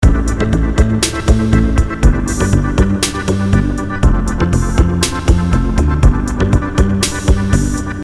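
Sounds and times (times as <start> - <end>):
music loop: 0.0 - 8.0.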